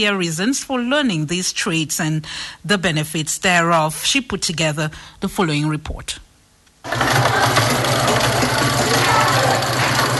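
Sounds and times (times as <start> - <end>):
speech: 0.0 - 7.9
sewing machines humming in a tailoring workshop in Yaoundé: 6.8 - 10.1.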